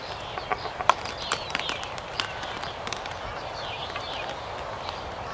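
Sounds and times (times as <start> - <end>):
waved albatross giving a rapid wooden rattle: 0.5 - 4.7.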